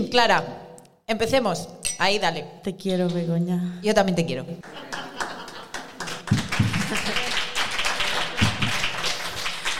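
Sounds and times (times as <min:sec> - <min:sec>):
speech: 0:00.0 - 0:05.0
laughter: 0:04.6 - 0:09.3
audience applause: 0:04.6 - 0:09.7.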